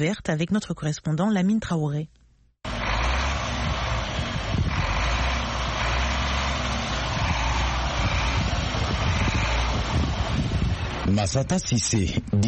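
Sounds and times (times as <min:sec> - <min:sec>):
speech: 0:00.0 - 0:02.2, 0:11.1 - 0:12.4
heavy truck engine rumbling: 0:02.6 - 0:12.4.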